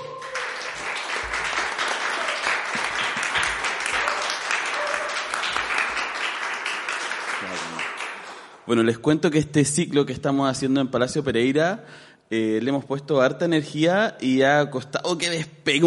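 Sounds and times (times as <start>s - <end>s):
audience applause: 0.0s - 8.5s
speech: 8.7s - 15.8s.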